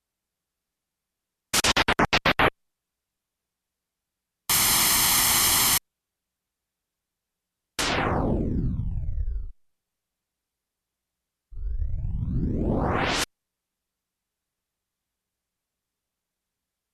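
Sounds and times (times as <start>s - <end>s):
static noise: 1.4s - 2.8s, 4.4s - 5.9s, 7.8s - 9.6s, 11.6s - 13.3s.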